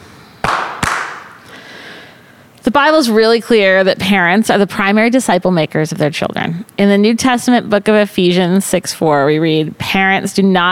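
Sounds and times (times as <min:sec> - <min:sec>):
single hand clap: 0:00.4 - 0:01.4
speech: 0:02.8 - 0:10.6.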